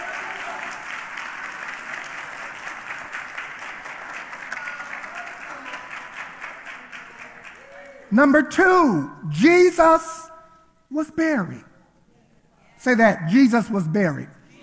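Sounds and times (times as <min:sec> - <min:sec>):
audience clapping: 0:00.0 - 0:08.4
speech: 0:08.1 - 0:10.2, 0:10.9 - 0:11.7, 0:12.8 - 0:14.4.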